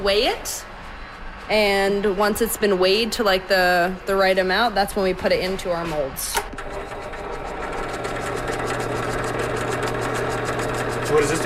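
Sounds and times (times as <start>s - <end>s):
speech: 0.0s - 0.7s, 1.5s - 7.0s, 11.1s - 11.4s
drill press spinning a mixing blade: 6.4s - 11.4s.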